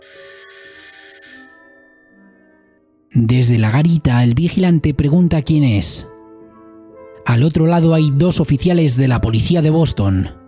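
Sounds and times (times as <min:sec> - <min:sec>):
museum doorbell ringing: 0:00.0 - 0:02.7
speech: 0:03.2 - 0:06.2, 0:07.3 - 0:10.4.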